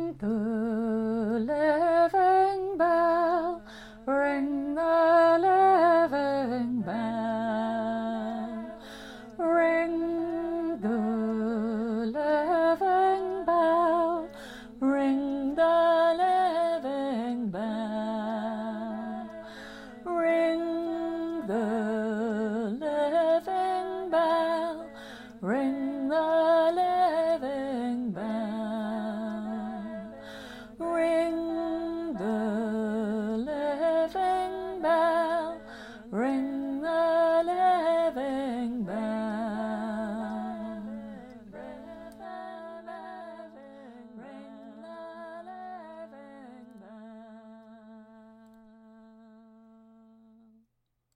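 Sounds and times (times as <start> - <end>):
community choir singing a four-part round: 0.2 - 49.8.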